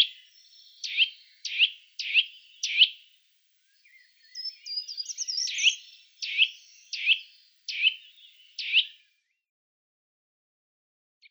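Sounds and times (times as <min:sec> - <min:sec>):
Eurasian nuthatch contact call: 0:00.0 - 0:03.1, 0:03.8 - 0:09.0.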